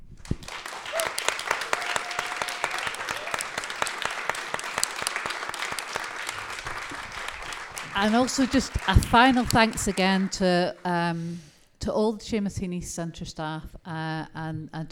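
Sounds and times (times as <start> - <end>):
round of applause for poets: 0.2 - 10.5
speech: 8.0 - 14.9.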